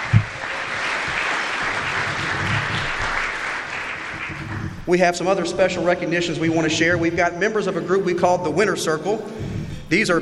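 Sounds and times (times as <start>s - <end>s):
audience applause: 0.0s - 5.0s
speech: 4.9s - 10.2s.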